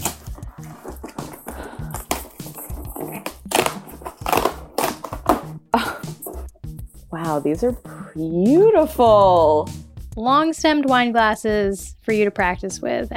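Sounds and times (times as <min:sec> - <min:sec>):
fragile cardboard package box being opened: 0:00.0 - 0:05.4
speech: 0:07.2 - 0:13.1.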